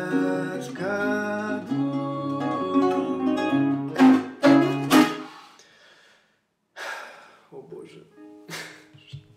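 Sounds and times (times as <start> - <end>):
birthday song in Russian: 0.0 - 5.5.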